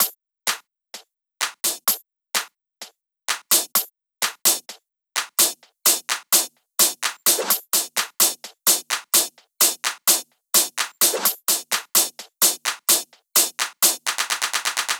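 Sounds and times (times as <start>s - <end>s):
drum loop: 0.0s - 0.6s, 1.4s - 2.5s, 3.3s - 14.9s.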